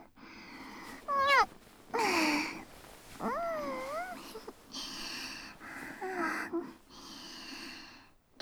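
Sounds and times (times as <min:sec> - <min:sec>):
sex sounds in cowgirl position: 0:00.5 - 0:07.4
deep kissing under a futon: 0:00.6 - 0:06.6.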